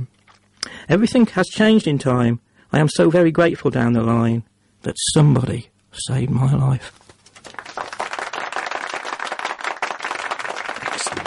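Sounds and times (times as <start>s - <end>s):
speech: 0.9s - 7.0s
machine-made round of applause sound effect: 7.4s - 11.2s.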